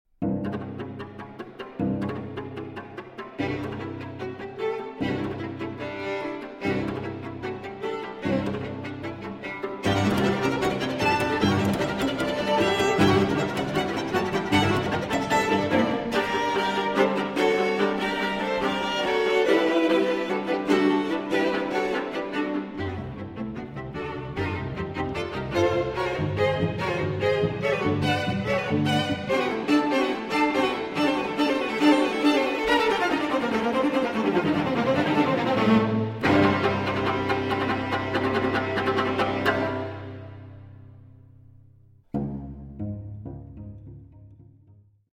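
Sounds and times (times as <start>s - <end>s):
string quartet playing a playful allegro: 0.2s - 44.0s.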